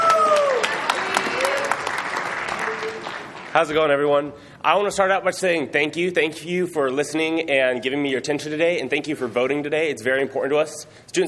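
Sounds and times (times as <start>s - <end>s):
audience applause: 0.0s - 4.0s
speech: 3.6s - 11.2s.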